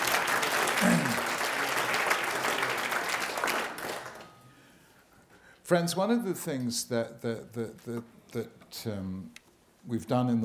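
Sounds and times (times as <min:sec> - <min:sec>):
audience applause: 0:00.0 - 0:04.3
speech: 0:05.7 - 0:10.4.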